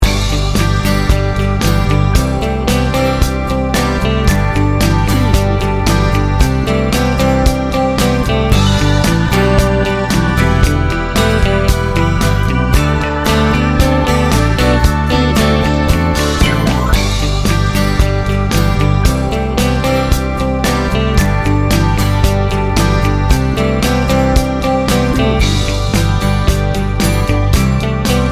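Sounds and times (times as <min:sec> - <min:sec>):
laid back country music: 0:00.0 - 0:28.3.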